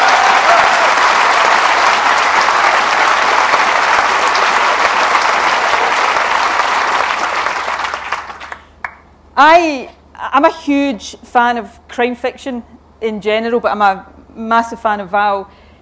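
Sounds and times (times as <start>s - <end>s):
audience applause: 0.0s - 9.0s
speech: 9.4s - 15.6s.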